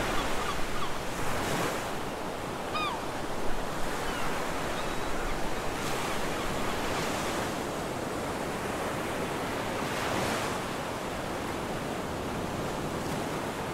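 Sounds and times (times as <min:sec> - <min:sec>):
seagulls calling on the beach: 0:00.0 - 0:01.3, 0:02.1 - 0:07.0
ocean waves on the beach: 0:00.0 - 0:13.7.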